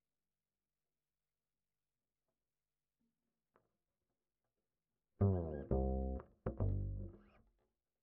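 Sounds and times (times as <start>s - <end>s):
bass line: 5.2s - 7.3s.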